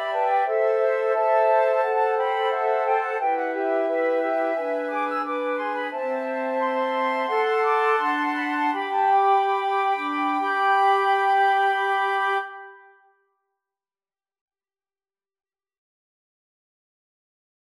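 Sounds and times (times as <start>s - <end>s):
flute choir: 0.0s - 13.0s.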